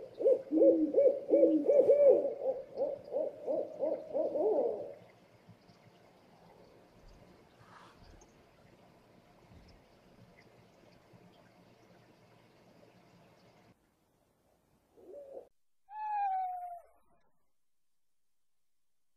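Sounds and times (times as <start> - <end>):
scops owl hooting: 0.0 - 5.0, 15.0 - 17.2.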